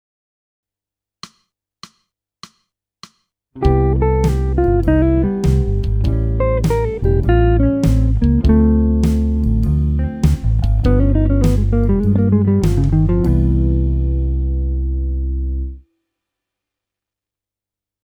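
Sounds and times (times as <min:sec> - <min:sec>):
jazz music: 0:03.6 - 0:15.7.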